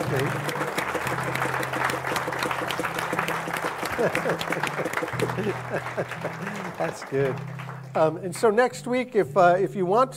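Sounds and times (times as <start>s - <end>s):
laughter: 0.0s - 7.4s
audience applauding: 0.0s - 8.7s
speech: 0.1s - 0.8s, 4.0s - 4.8s, 5.4s - 10.1s.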